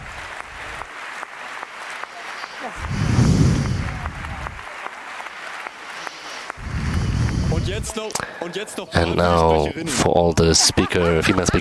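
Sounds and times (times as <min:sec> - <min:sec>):
round of applause for speakers: 0:00.0 - 0:09.0
laughter: 0:01.8 - 0:06.5, 0:07.5 - 0:11.5
speech: 0:07.8 - 0:11.5.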